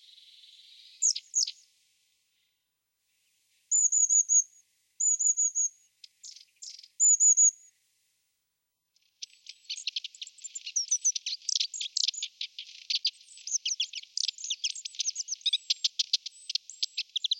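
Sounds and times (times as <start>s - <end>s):
long-tailed tit twittering: 0.2s - 1.6s, 3.7s - 4.4s, 5.0s - 7.5s, 9.2s - 17.3s.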